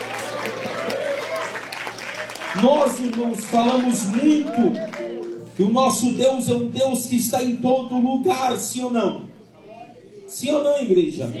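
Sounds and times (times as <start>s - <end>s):
church congregation clapping in praise: 0.0s - 6.0s
speech: 2.6s - 9.3s, 10.4s - 11.3s.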